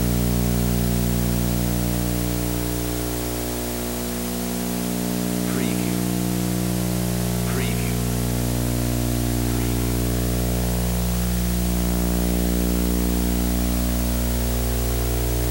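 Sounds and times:
Sony tube TV digital static hum and snow: 0.1s - 15.4s.

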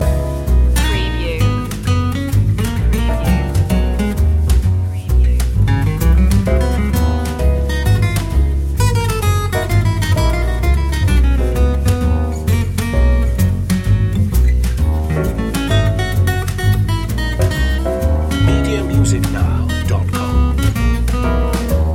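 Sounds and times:
swing music loop: 0.0s - 21.9s.

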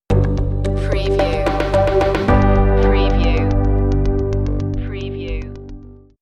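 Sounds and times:
new technologies music stinger: 0.5s - 6.0s.

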